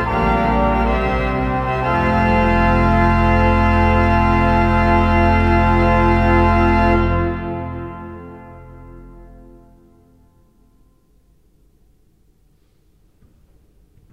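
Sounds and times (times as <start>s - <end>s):
full ensemble playing: 0.0s - 8.4s.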